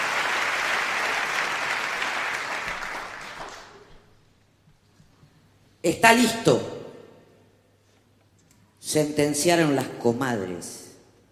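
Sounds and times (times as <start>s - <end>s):
audience applauding the poets: 0.0s - 4.2s
speech: 5.8s - 6.7s, 8.9s - 10.8s.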